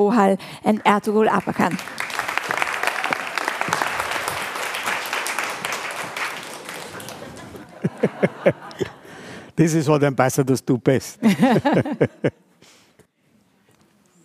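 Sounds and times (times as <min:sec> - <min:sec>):
speech: 0:00.0 - 0:02.0, 0:08.2 - 0:08.9, 0:09.6 - 0:12.4
audience applause: 0:01.4 - 0:08.7
laughter: 0:06.4 - 0:09.3, 0:11.2 - 0:12.5.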